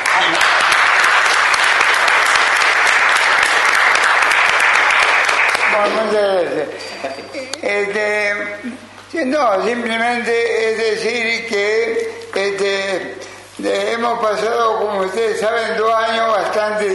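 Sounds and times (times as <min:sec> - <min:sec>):
applause: 0:00.0 - 0:06.0
speech: 0:06.7 - 0:16.9.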